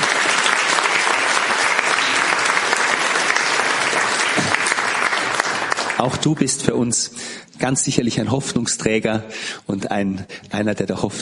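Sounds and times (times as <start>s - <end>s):
audience applause: 0.0s - 6.6s
speech: 6.0s - 11.1s.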